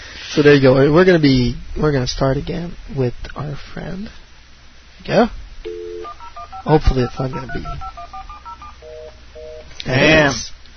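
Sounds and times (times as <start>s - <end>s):
faint hum: 0.0s - 10.7s
speech: 0.4s - 4.2s, 5.0s - 5.8s, 6.6s - 8.0s, 9.8s - 10.5s
telephone keypad tones: 5.7s - 9.7s.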